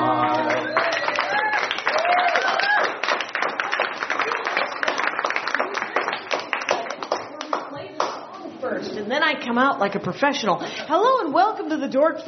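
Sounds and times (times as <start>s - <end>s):
live audience applause: 0.2s - 8.2s
voices whooping and cheering: 0.5s - 3.0s
speech: 9.5s - 12.2s.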